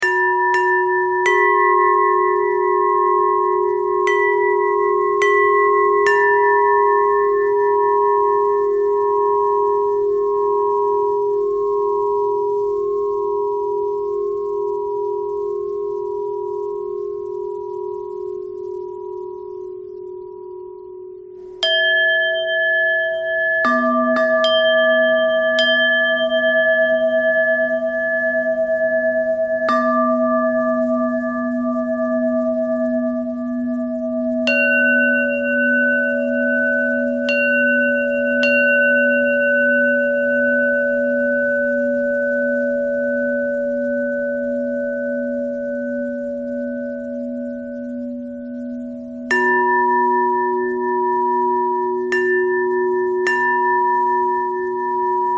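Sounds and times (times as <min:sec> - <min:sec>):
bell: 0:00.0 - 0:55.3.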